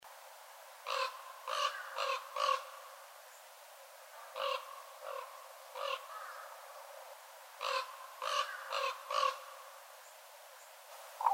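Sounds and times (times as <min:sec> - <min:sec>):
Northern raven cawing: 0:00.8 - 0:02.8, 0:04.4 - 0:06.6, 0:07.6 - 0:09.6, 0:11.2 - 0:11.3.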